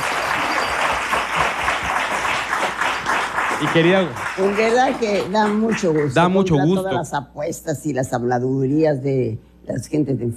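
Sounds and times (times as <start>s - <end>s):
applause: 0.0s - 6.8s
speech: 3.6s - 10.3s.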